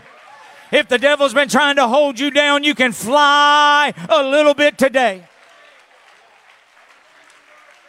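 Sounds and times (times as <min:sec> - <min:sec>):
audience clapping: 0:00.0 - 0:01.5, 0:04.0 - 0:07.8
speech: 0:00.7 - 0:05.3.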